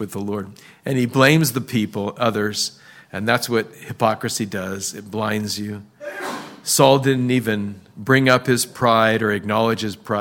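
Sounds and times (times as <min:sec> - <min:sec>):
speech: 0:00.0 - 0:10.2
sneeze: 0:06.0 - 0:06.7.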